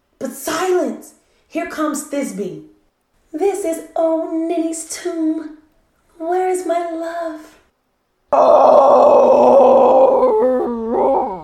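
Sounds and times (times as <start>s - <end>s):
speech: 0.2s - 2.7s, 3.3s - 5.6s, 6.2s - 7.6s, 8.3s - 9.6s
man imitating a lion's roar: 8.3s - 11.4s.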